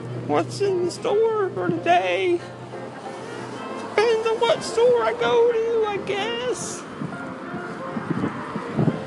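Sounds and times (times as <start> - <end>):
speech: 0.3 - 2.6, 4.4 - 6.8
wind blowing into the microphone: 4.5 - 9.0.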